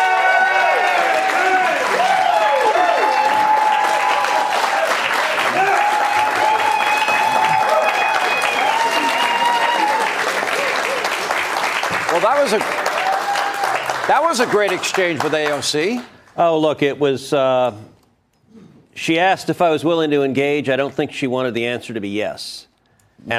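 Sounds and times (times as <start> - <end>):
studio audience cheers and whoops: 0.0 - 11.2, 12.5 - 14.0
studio audience applause welcoming a guest on a live TV show: 0.0 - 16.4
speech: 12.3 - 12.7, 14.1 - 17.9, 19.0 - 23.3.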